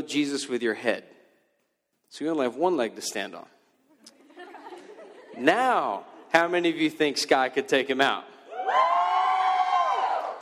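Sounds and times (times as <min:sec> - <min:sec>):
speech: 0:00.0 - 0:01.2, 0:02.1 - 0:03.6, 0:05.4 - 0:08.9
laughter: 0:03.9 - 0:06.5
crowd cheering and whooping: 0:08.5 - 0:10.4.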